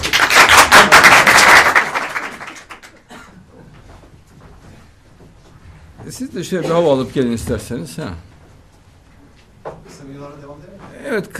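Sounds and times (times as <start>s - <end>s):
audience applause: 0.0s - 3.1s
speech: 6.1s - 8.3s, 11.1s - 11.3s.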